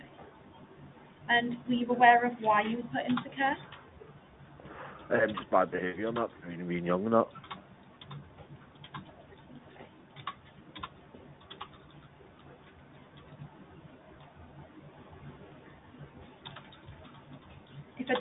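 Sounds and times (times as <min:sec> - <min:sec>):
low hiss: 0:00.0 - 0:18.1
speech: 0:01.3 - 0:03.8, 0:05.1 - 0:07.4
fingers typing notes on a computer keyboard: 0:05.2 - 0:06.3, 0:07.3 - 0:13.4, 0:16.2 - 0:18.1.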